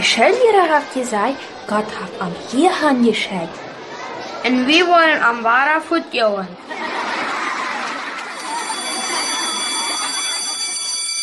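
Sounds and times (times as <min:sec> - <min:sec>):
speech: 0:00.1 - 0:03.7, 0:04.4 - 0:06.9
laughter: 0:06.6 - 0:11.1
school bell ringing: 0:08.2 - 0:11.2.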